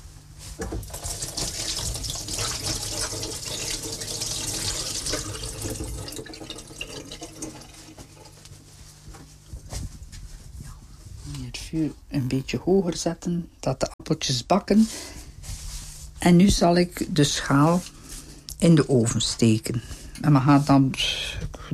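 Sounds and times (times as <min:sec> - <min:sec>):
water running from a tap: 0:00.8 - 0:08.4
speech: 0:11.7 - 0:15.1, 0:16.2 - 0:17.9, 0:18.6 - 0:21.7.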